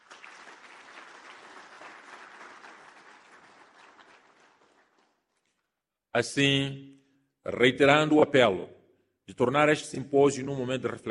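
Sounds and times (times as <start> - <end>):
audience applause at a government symposium: 0.0 - 5.2
speech: 6.2 - 11.0.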